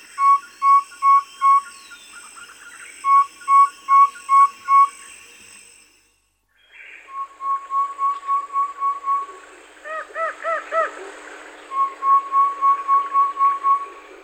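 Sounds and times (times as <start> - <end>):
white-spotted flufftail hooting call in Uganda: 0.0 - 5.9, 6.8 - 9.4, 11.7 - 14.1.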